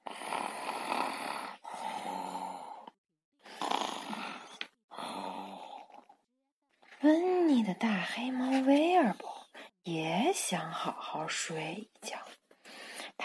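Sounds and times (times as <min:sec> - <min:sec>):
snoring: 0:00.0 - 0:06.2
speech: 0:07.0 - 0:12.2.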